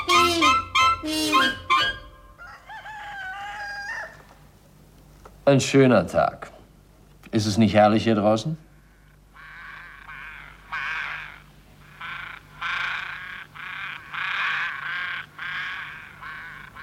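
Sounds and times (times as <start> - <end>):
ravens cawing outdoors: 0.0 - 4.4, 8.6 - 16.8
speech: 5.5 - 6.5, 7.3 - 8.7.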